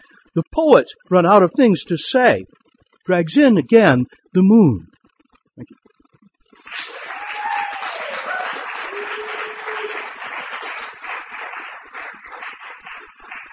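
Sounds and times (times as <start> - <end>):
speech: 0.4 - 5.0, 5.6 - 5.8
audience applause after a poetry reading: 6.6 - 13.5.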